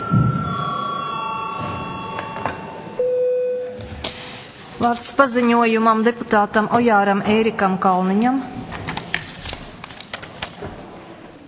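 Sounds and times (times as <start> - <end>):
parliament chamber bell: 0.0 - 3.7
speech: 4.8 - 8.5.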